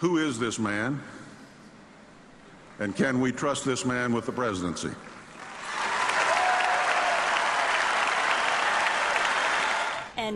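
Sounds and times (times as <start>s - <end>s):
speech: 0.0s - 1.2s, 2.8s - 5.2s
convention crowd yelling: 5.5s - 10.1s.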